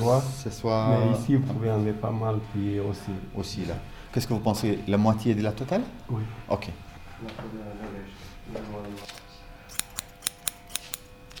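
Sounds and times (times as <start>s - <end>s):
speech: 0.0s - 9.2s
scissors cutting hair during a haircut: 9.0s - 11.3s.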